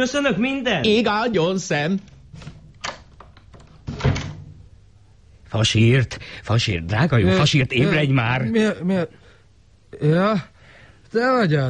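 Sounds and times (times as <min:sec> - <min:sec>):
speech: 0:00.0 - 0:02.5, 0:05.5 - 0:09.2, 0:09.9 - 0:10.5, 0:11.1 - 0:11.6
door swinging shut on its own: 0:02.0 - 0:04.7.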